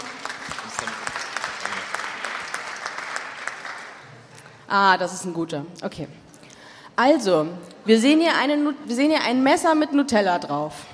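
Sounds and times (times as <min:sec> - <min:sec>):
audience applause: 0:00.0 - 0:04.2
speech: 0:04.7 - 0:06.3, 0:07.0 - 0:10.9.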